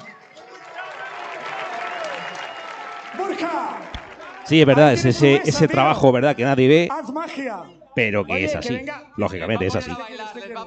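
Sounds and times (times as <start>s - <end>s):
audience applause: 0.0s - 6.0s
speech: 3.1s - 10.6s.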